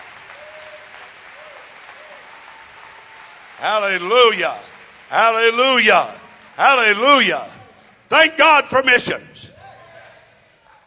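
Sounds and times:
audience clapping: 0.0s - 7.6s
speech: 3.6s - 9.5s.

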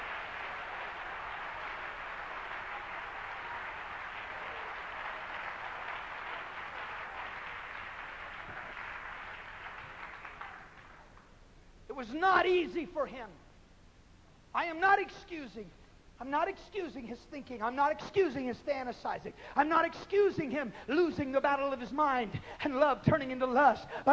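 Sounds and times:
audience applause: 0.0s - 11.3s
speech: 12.0s - 13.4s, 14.6s - 24.1s.

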